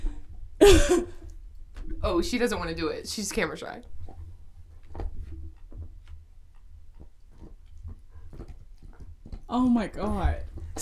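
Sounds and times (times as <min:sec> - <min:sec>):
speech: 0:00.6 - 0:01.2, 0:02.0 - 0:04.0, 0:09.5 - 0:10.8
pet gnawing on a wooden door: 0:04.0 - 0:10.8.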